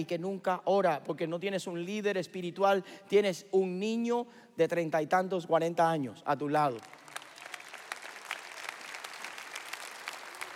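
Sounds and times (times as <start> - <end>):
speech: 0.0 - 7.0
audience applause: 6.8 - 10.5.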